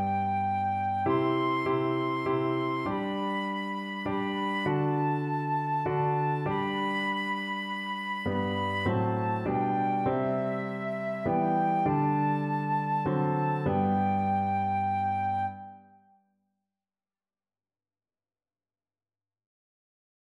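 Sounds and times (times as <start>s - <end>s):
flute playing a hymn: 0.0s - 16.0s.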